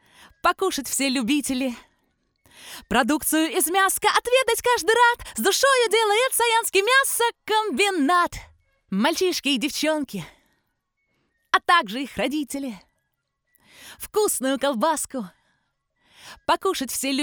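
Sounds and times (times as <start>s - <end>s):
vocals: 0.0s - 1.9s, 2.5s - 10.4s, 11.6s - 12.8s, 13.8s - 15.4s, 16.2s - 17.2s.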